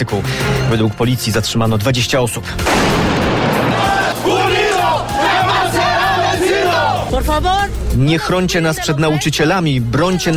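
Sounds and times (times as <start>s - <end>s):
speech: 0.0s - 3.4s, 7.1s - 10.3s
large protesting crowd shouting: 3.5s - 7.1s.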